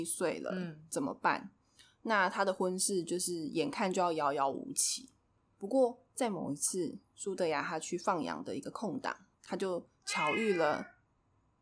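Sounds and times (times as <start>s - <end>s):
speech: 0.0s - 10.9s
cat meowing: 10.1s - 11.0s.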